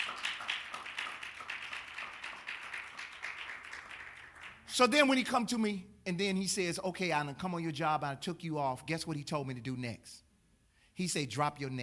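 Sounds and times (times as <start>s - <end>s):
audience clapping in a steady rhythmic beat: 0.0s - 4.8s
speech: 4.8s - 10.2s, 11.0s - 11.8s.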